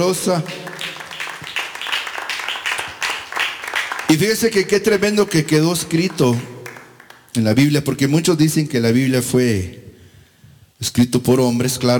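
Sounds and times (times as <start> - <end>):
speech: 0.0 - 0.7, 4.1 - 6.5, 7.4 - 9.8, 10.8 - 11.9
audience clapping hands: 0.0 - 7.7.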